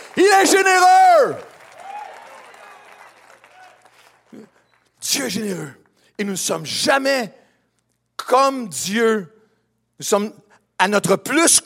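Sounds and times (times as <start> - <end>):
audience applauding: 0.0 - 5.0
speech: 0.2 - 1.5, 4.3 - 7.4, 8.3 - 9.4, 10.0 - 11.6.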